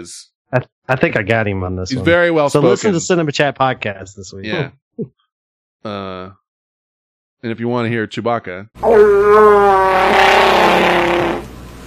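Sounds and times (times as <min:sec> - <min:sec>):
speech: 0:00.0 - 0:05.2, 0:05.8 - 0:06.4, 0:07.4 - 0:11.4
fart: 0:08.8 - 0:11.6.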